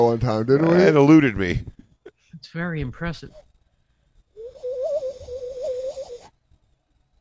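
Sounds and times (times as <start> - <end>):
speech: 0.0 - 1.8, 2.4 - 3.5
person imitating a bird call: 4.4 - 6.3.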